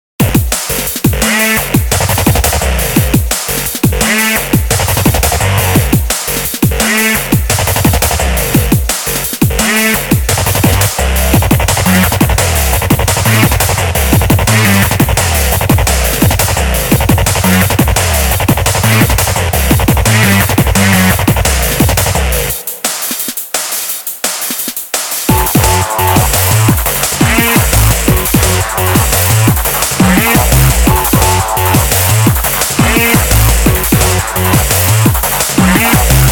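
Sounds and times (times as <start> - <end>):
drum and bass music: 0.2 - 36.3.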